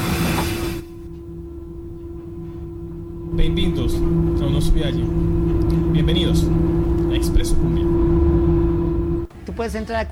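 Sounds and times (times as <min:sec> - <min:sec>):
train rumbling on rails: 0:00.0 - 0:10.1
speech: 0:03.4 - 0:08.4, 0:09.6 - 0:10.1.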